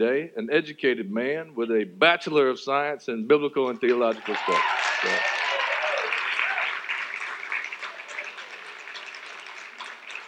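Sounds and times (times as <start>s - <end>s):
speech: 0.0s - 5.4s
audience clapping: 3.6s - 10.2s.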